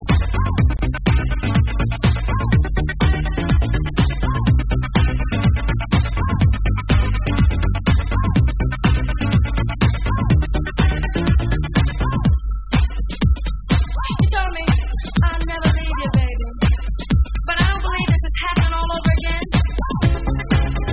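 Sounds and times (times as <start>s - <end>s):
hip house mix: 0.0s - 20.9s.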